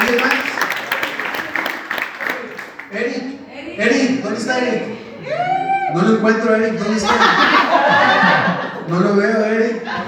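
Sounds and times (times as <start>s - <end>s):
audience applause: 0.0s - 2.9s
speech: 0.1s - 0.5s, 4.4s - 8.2s, 8.9s - 10.0s
laughter: 6.8s - 10.0s.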